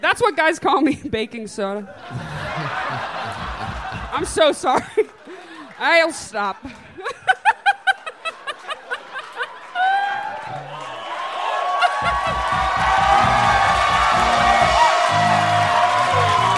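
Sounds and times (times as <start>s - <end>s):
speech: 0.1s - 3.4s, 4.1s - 5.1s, 5.8s - 6.8s
laughter: 1.8s - 16.5s
audience cheering: 2.1s - 4.6s, 7.4s - 16.5s
audience applause: 2.1s - 5.9s, 6.7s - 16.5s.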